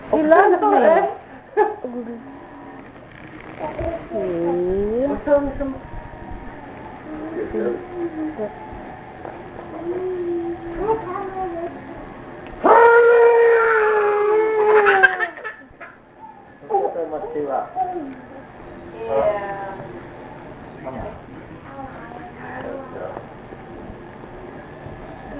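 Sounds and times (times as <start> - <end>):
speech: 0.1 - 2.4, 3.6 - 5.9, 7.1 - 8.8, 17.0 - 18.3, 19.1 - 19.6
pet dog howling and yipping: 12.6 - 15.5.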